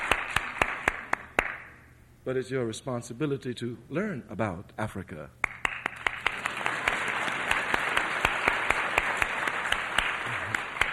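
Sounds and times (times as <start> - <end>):
audience applause: 0.0 - 1.5, 5.5 - 10.9
speech: 2.3 - 5.4.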